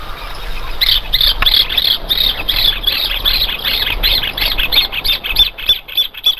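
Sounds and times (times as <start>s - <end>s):
rufous hornero pair duetting: 0.0s - 6.3s.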